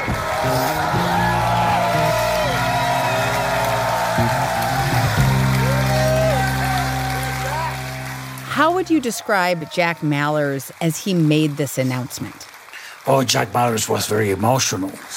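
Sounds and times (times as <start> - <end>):
crypto fans cheering: 0.0 - 14.0
speech: 8.8 - 15.1.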